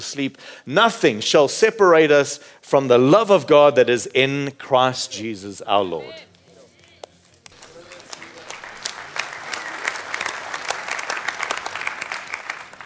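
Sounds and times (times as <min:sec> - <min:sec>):
speech: 0:00.0 - 0:06.3
audience clapping: 0:07.4 - 0:12.8.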